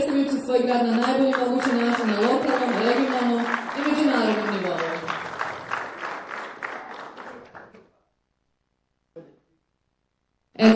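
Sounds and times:
applause at a civic awards ceremony in Bosanska Krupa: 0.0s - 8.0s
speech: 0.3s - 4.9s.

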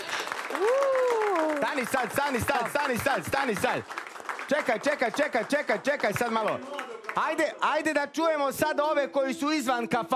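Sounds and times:
applause in a tavern: 0.0s - 8.1s
speech: 1.8s - 10.1s.

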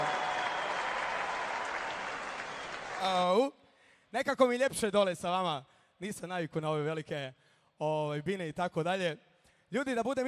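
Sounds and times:
audience applause for an orchestra at a kafana celebration: 0.0s - 3.2s
speech: 3.0s - 10.2s.

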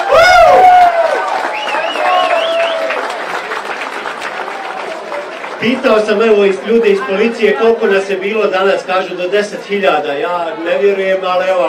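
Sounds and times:
crowd shouts: 0.0s - 3.2s
large crowd applauding at a charity gathering for children in Visoko: 0.0s - 7.4s
speech: 5.7s - 11.6s.

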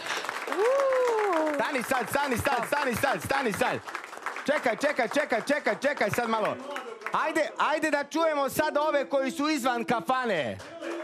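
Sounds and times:
audience applause inside a tavern: 0.0s - 8.0s, 10.4s - 11.0s
speech: 1.7s - 10.7s.

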